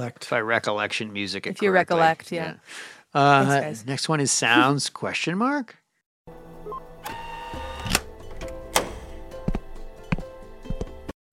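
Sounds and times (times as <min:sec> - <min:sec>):
speech: 0:00.0 - 0:06.4
key card unlocking a door: 0:07.0 - 0:09.2.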